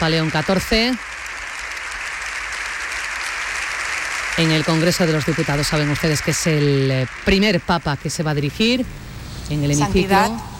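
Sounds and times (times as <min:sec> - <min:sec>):
speech: 0:00.0 - 0:01.1, 0:04.4 - 0:10.5
parliament applause from deputies and senators: 0:00.0 - 0:08.3.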